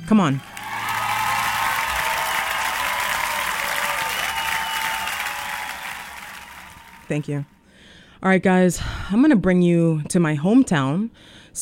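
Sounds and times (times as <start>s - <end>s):
speech: 0.1s - 0.5s, 7.1s - 7.6s, 8.2s - 11.6s
audience applause: 0.3s - 7.5s.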